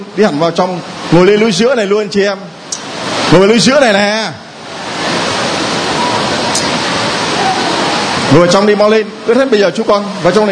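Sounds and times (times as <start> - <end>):
heavy rain pouring down: 0.0 - 10.5
speech: 0.2 - 2.6, 3.3 - 4.4, 8.3 - 10.5.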